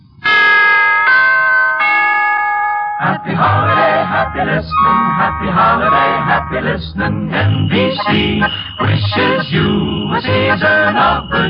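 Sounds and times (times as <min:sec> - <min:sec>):
three-note broadcast chimes: 0:00.2 - 0:07.8
group of voices singing: 0:03.0 - 0:11.4
speech: 0:03.0 - 0:11.4.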